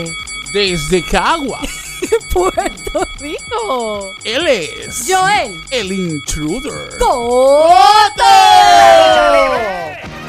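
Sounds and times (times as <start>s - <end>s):
speech: 0.0s - 10.1s
laughter: 1.6s - 3.4s
crowd cheering and whooping: 8.0s - 10.0s.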